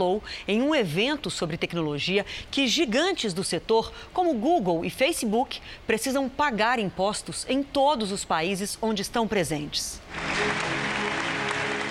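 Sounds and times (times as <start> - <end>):
speech: 0.0 - 11.0
audience applause at a tech event: 10.1 - 11.8.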